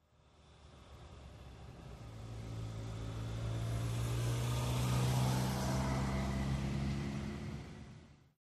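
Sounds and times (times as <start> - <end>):
car passing at medium speed and accelerating away: 2.2 - 7.6.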